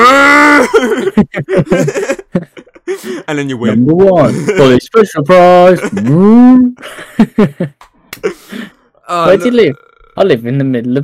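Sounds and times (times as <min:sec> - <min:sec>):
rapid chatter and chuckling: 0:00.9 - 0:04.8, 0:05.5 - 0:08.4
speech: 0:01.2 - 0:01.9, 0:03.3 - 0:11.0
voice imitating a cow moo for a darts game show: 0:09.1 - 0:10.2.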